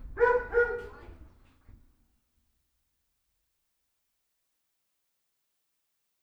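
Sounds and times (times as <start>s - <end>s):
dog barking and yelping: 0.2s - 1.0s.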